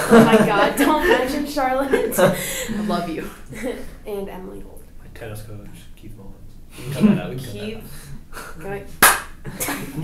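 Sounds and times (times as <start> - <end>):
laughter: 0.0 - 3.8, 6.8 - 7.5, 9.4 - 10.0
speech: 0.1 - 10.0
loud hand clap: 9.0 - 9.4.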